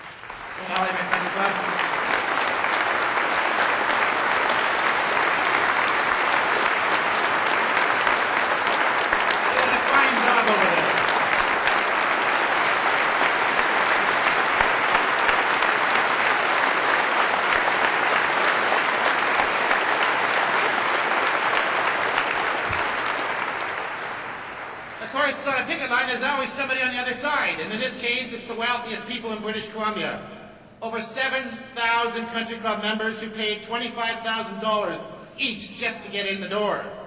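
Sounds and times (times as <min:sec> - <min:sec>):
crowd applauding young workers in a gallery in British Columbia: 0:00.0 - 0:28.2
speech: 0:26.1 - 0:37.0.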